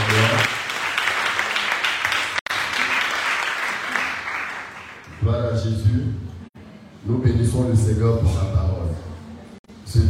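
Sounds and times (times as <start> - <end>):
church congregation applauding to acclaim the word of the Lord: 0.0 - 5.4
speech: 7.0 - 8.6.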